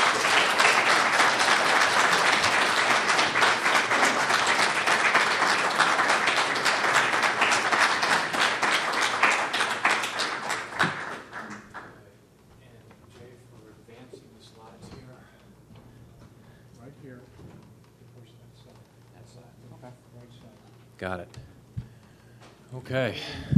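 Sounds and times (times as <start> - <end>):
audience applause: 0.0 - 12.1.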